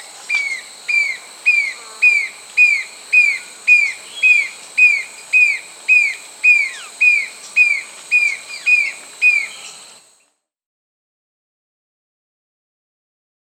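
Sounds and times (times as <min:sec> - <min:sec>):
Ihering's Antwren Myrmotherula iheringi calling in Peru: 0:00.3 - 0:09.9.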